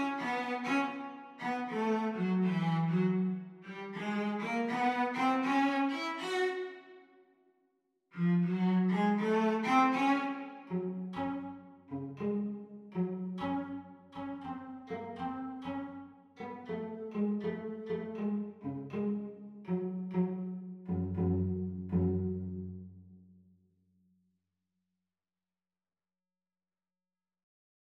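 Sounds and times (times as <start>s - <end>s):
cello duet playalong at practice speed: 0.0s - 7.0s, 8.2s - 23.0s.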